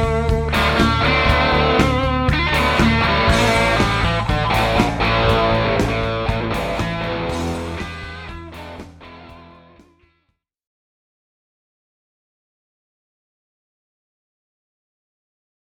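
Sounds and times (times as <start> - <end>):
homebuilt Les Paul electric guitar: 0.0 - 10.1.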